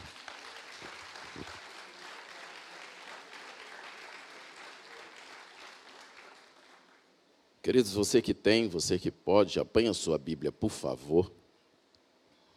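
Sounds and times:
audience applause: 0:00.0 - 0:07.0
speech: 0:07.7 - 0:11.4.

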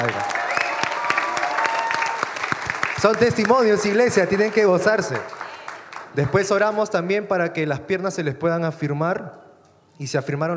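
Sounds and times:
audience clapping: 0:00.0 - 0:07.0
speech: 0:03.0 - 0:05.4, 0:06.1 - 0:09.4, 0:10.0 - 0:10.5.

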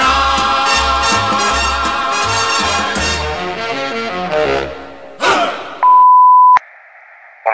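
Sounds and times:
upbeat mambo-style music with bass and bright melody: 0:00.0 - 0:05.7
answering machine beep: 0:05.8 - 0:06.6.

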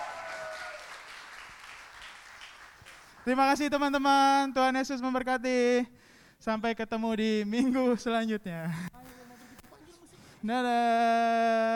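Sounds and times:
audience applause: 0:00.0 - 0:03.3
speech: 0:03.2 - 0:09.0, 0:10.4 - 0:11.7.

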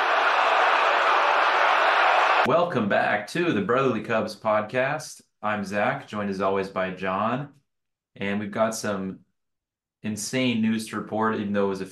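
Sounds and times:
stadium crowd cheering after home run: 0:00.0 - 0:02.5
speech: 0:02.4 - 0:07.6, 0:08.2 - 0:09.2, 0:10.0 - 0:11.9.

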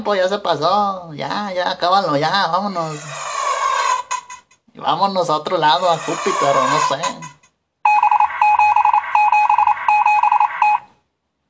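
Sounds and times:
speech: 0:00.0 - 0:03.2, 0:04.8 - 0:07.2
Morse code beeps: 0:07.8 - 0:10.9.

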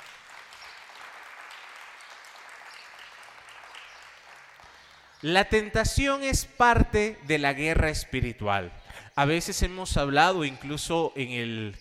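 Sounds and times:
applause: 0:00.0 - 0:05.4
speech: 0:05.2 - 0:11.7.

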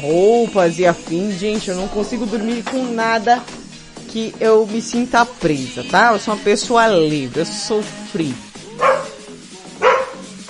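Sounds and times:
speech: 0:00.0 - 0:08.9
dog barking: 0:08.7 - 0:10.4.

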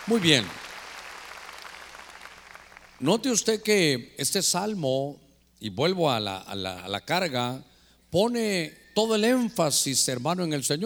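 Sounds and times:
audience clapping loudly: 0:00.0 - 0:03.0
speech: 0:00.1 - 0:00.6, 0:03.0 - 0:10.8.

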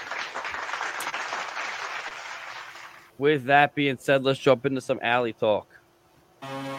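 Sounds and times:
applause: 0:00.0 - 0:03.1
speech: 0:03.2 - 0:05.7.

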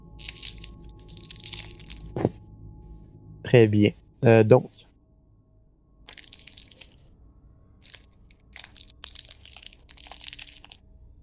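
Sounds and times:
low steady hum: 0:00.0 - 0:11.2
hard candies crunching while chewed: 0:00.2 - 0:02.2, 0:06.1 - 0:07.0, 0:07.8 - 0:11.2
speech: 0:03.5 - 0:04.8.

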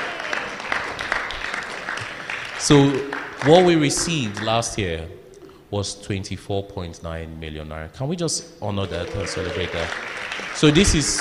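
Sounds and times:
audience clapping hands: 0:00.0 - 0:04.9, 0:08.8 - 0:11.1
speech: 0:02.6 - 0:11.1.

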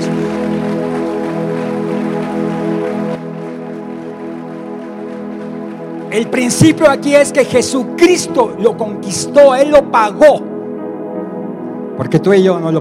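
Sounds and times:
audience applause: 0:00.0 - 0:06.5
speech: 0:06.1 - 0:10.5, 0:12.0 - 0:12.7.

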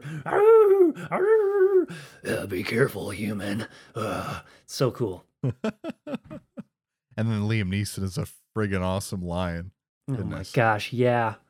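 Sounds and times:
person's voice imitating a big wolf growling: 0:00.0 - 0:01.9
speech: 0:00.2 - 0:06.5, 0:07.2 - 0:11.4
laughter: 0:05.4 - 0:06.7.

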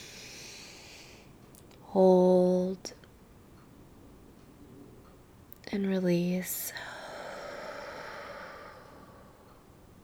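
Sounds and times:
deep inhale during a guided meditation: 0:00.0 - 0:01.3, 0:06.6 - 0:10.0
speech: 0:01.9 - 0:03.0, 0:05.7 - 0:06.8.

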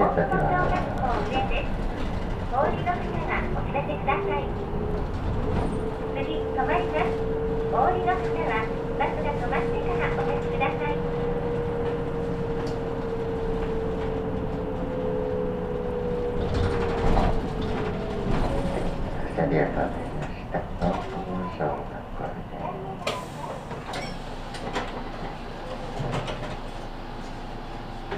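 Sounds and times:
voices: 0:00.0 - 0:05.1, 0:05.8 - 0:12.0, 0:18.1 - 0:23.9
Saihi bus engine rumble: 0:00.0 - 0:28.1.

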